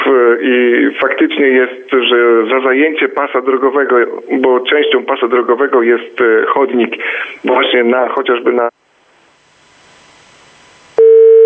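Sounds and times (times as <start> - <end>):
speech: 0.1 - 8.8
faint telephone line hiss: 9.0 - 11.0
telephone busy tone after a dropped call: 11.0 - 11.4.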